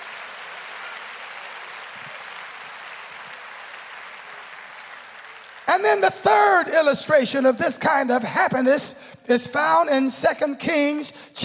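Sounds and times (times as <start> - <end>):
audience clapping hands: 0.0 - 6.9
speech: 5.8 - 11.4.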